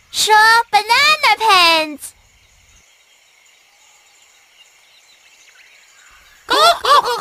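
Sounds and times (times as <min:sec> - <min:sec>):
speech: 0:00.2 - 0:00.9
turkeys laughing: 0:06.5 - 0:07.1.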